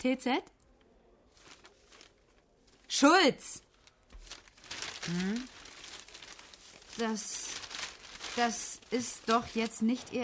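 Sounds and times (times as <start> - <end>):
speech: 0.0 - 0.6, 2.9 - 3.6, 5.0 - 5.6, 7.0 - 7.6, 8.4 - 10.2
leafing through pages of paper: 1.3 - 2.8, 3.7 - 10.2.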